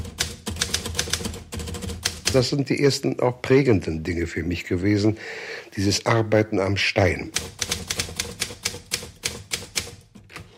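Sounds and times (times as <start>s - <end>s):
typing on a typewriter raised up on a stand: 0.0s - 2.6s, 7.3s - 10.5s
speech: 2.3s - 7.7s.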